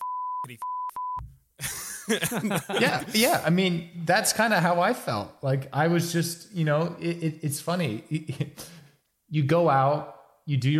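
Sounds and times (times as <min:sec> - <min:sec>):
censor bleep over a swear word: 0:00.0 - 0:01.3
speech: 0:00.4 - 0:10.7
laughter: 0:01.6 - 0:03.5.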